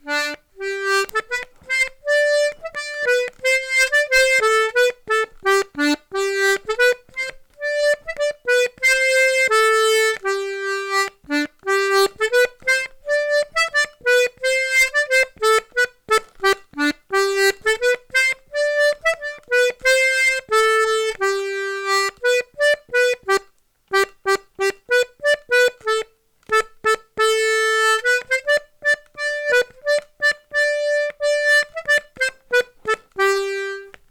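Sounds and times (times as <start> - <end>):
polka music: 0.0 - 34.1.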